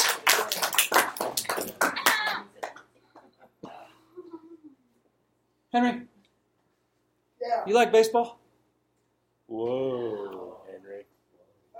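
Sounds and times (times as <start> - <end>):
hands clapping: 0.0 - 3.5
speech: 5.7 - 6.1, 7.7 - 8.4, 9.5 - 10.0.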